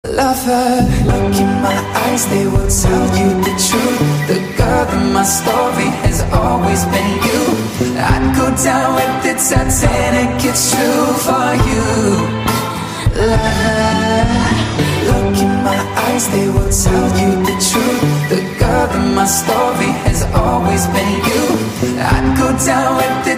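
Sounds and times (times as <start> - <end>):
remix music: 0.1 - 23.3.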